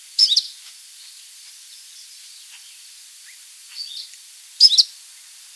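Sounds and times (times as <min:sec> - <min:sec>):
Hume's leaf warbler call: 0:00.2 - 0:00.5, 0:04.6 - 0:04.8.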